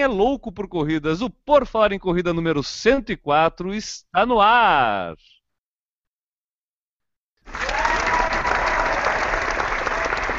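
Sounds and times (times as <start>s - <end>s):
speech: 0.0s - 5.3s
audience applause: 7.4s - 10.3s.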